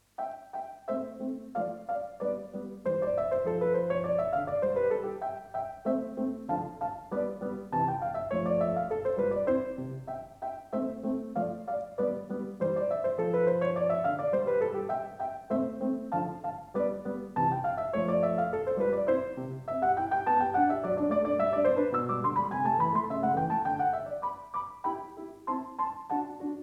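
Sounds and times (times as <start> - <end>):
piano sonata: 0.0 - 26.6.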